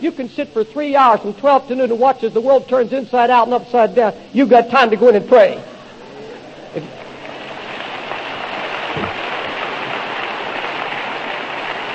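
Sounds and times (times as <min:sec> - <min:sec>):
speech: 0:00.0 - 0:05.7, 0:06.8 - 0:07.0
crowd of men clapping: 0:07.2 - 0:11.9.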